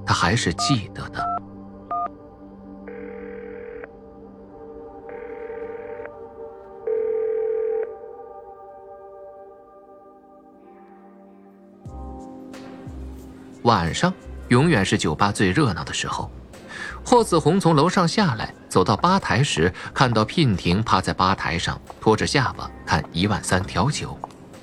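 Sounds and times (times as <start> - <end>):
speech: 0.1 - 1.3, 13.7 - 16.4, 17.0 - 24.3
payphone dial tone: 2.9 - 3.9, 5.1 - 6.1, 6.9 - 7.9.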